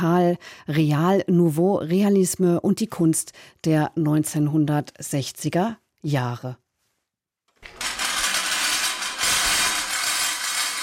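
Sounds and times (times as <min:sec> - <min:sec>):
speech: 0:00.0 - 0:06.6
kinetic scrap sculpture clattering into motion: 0:07.6 - 0:10.8.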